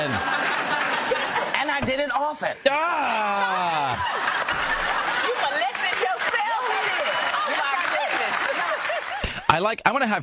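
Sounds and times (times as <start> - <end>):
laughter: 0.0 - 9.5
speech: 2.3 - 4.7, 9.6 - 10.2
people applauding: 2.8 - 9.5.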